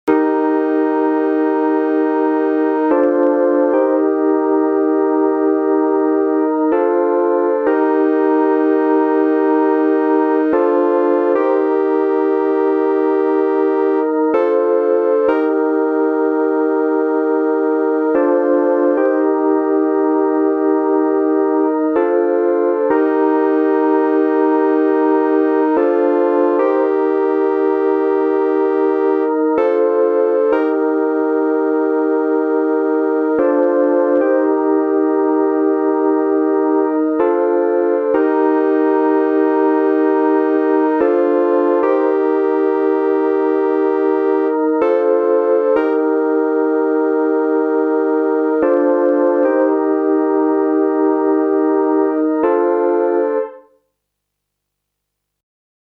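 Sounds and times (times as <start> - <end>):
vintage square wave fake Wurlitzer electric piano pad: 0.1 - 53.7.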